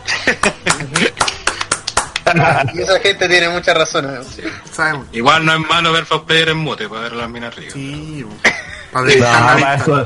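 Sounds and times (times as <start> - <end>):
laughter: 0.0 - 3.0
clapping: 0.3 - 2.3
speech: 2.4 - 10.0.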